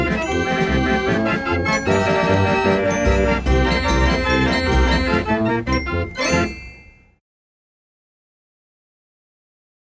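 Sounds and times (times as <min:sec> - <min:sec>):
fairground organ: 0:00.0 - 0:06.6.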